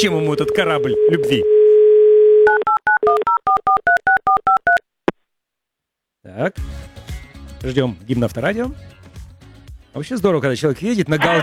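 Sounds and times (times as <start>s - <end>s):
speech: 0.0s - 1.6s, 6.2s - 7.0s, 7.6s - 9.0s, 10.0s - 11.4s
telephone dial tone while calling a listener: 0.4s - 4.8s
laughter: 11.1s - 11.4s.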